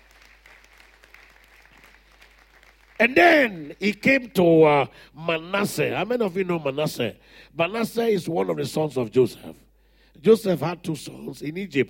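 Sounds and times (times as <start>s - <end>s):
audience clapping: 0.0s - 4.0s
speech: 3.0s - 9.6s, 10.2s - 11.8s.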